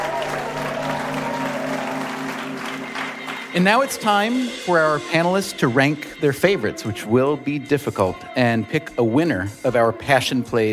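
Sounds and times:
live comedy game show audience applause for contestants: 0:00.0 - 0:04.8
speech: 0:03.6 - 0:10.7.

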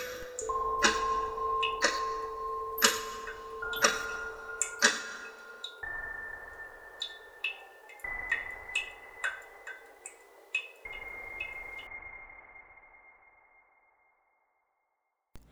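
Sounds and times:
clock ticking: 0:00.0 - 0:11.9.

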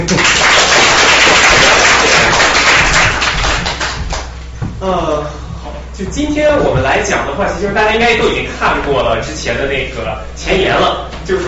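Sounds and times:
warm applause from the audience: 0:00.0 - 0:04.3
speech: 0:06.0 - 0:11.4.

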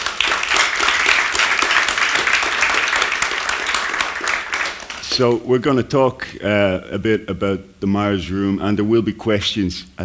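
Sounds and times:
audience applause at a book talk: 0:00.0 - 0:05.4
speech: 0:05.2 - 0:10.0.

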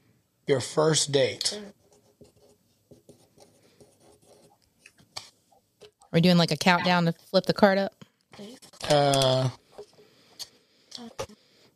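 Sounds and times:
speech: 0:00.5 - 0:01.8, 0:06.1 - 0:09.6
pen scratching on cards as someone handwrites answers: 0:01.8 - 0:04.6.

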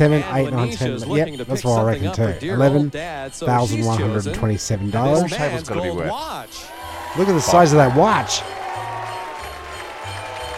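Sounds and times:
speech: 0:00.0 - 0:08.6
studio audience booing: 0:06.7 - 0:10.5.

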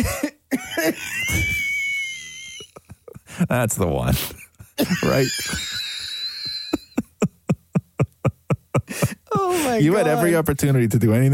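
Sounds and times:
wheezing cough: 0:00.0 - 0:01.6
laughter: 0:00.0 - 0:03.6, 0:04.4 - 0:10.4
speech: 0:03.5 - 0:05.7, 0:09.7 - 0:11.3.

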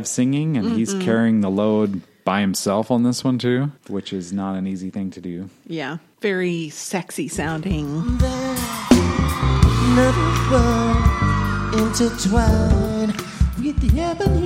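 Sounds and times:
speech: 0:00.0 - 0:10.8, 0:11.9 - 0:13.0
live concert crowd cheering wildly: 0:07.8 - 0:14.3.

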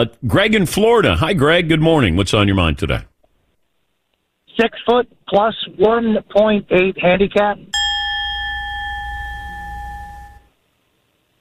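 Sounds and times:
speech: 0:00.0 - 0:03.1, 0:04.6 - 0:07.8
loud bell ringing: 0:07.8 - 0:10.5.

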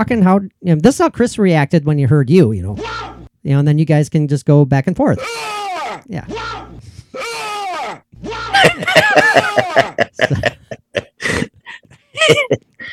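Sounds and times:
speech: 0:00.0 - 0:05.4, 0:06.1 - 0:06.6, 0:08.6 - 0:10.7, 0:12.3 - 0:12.6
man's voice imitating a woman screaming: 0:02.8 - 0:03.3, 0:05.2 - 0:10.0
laughter: 0:08.2 - 0:12.7.

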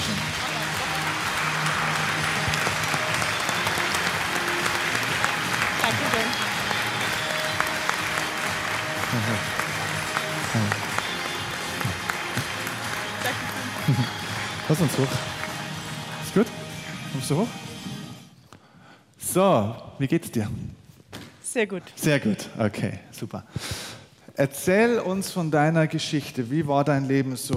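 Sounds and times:
audience applause: 0:00.0 - 0:16.4
speech: 0:14.7 - 0:15.3, 0:17.2 - 0:17.7, 0:19.4 - 0:20.8, 0:21.6 - 0:23.8, 0:24.4 - 0:27.5.

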